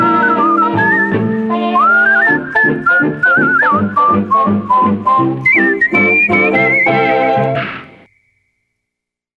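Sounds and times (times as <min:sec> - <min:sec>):
whistles: 0:00.0 - 0:08.9.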